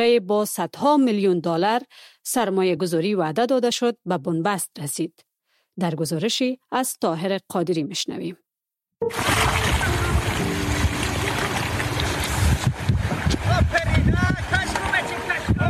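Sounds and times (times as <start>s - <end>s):
speech: 0.0s - 8.4s, 9.0s - 9.6s
flowing water of the Amu river: 9.0s - 15.6s.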